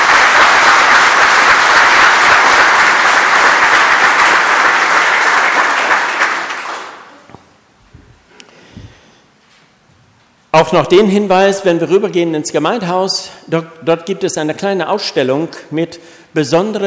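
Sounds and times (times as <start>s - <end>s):
audience applause in a church: 0.0s - 7.3s
speech: 10.6s - 16.8s.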